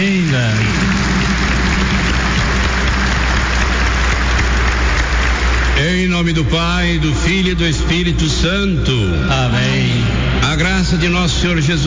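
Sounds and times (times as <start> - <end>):
audience applause: 0.0 - 6.5
speech: 7.0 - 11.8.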